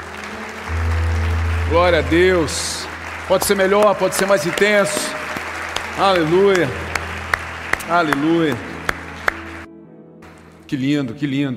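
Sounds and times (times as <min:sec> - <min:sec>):
audience applause: 0:00.0 - 0:09.7
deep sustained low note: 0:00.6 - 0:04.3
speech: 0:01.7 - 0:05.2, 0:06.0 - 0:06.9, 0:07.9 - 0:08.7, 0:10.7 - 0:11.5.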